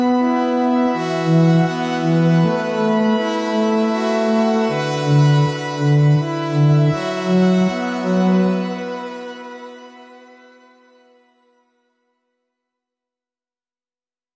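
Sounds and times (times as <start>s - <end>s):
bass: 0.0s - 10.2s.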